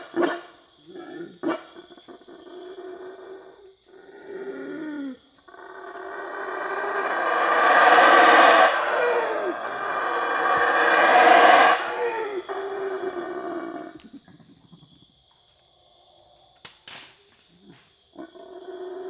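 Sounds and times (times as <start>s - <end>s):
black howler monkey howling: 4.1s - 14.0s.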